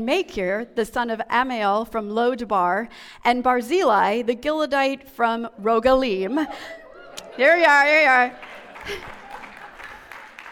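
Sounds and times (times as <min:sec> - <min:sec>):
speech: 0:00.0 - 0:06.8, 0:07.4 - 0:09.2
laughter: 0:06.3 - 0:10.5
audience applause: 0:08.1 - 0:10.5.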